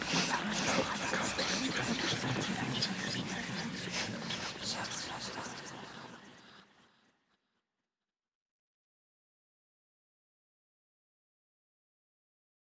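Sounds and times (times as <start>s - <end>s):
crowd: 0.0s - 7.1s.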